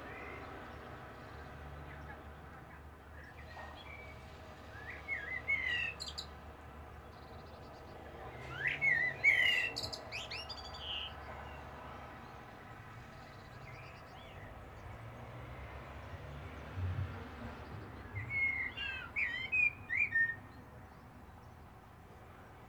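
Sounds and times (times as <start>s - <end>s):
Common blackbird singing: 4.8s - 6.3s, 8.3s - 11.2s, 18.1s - 20.4s.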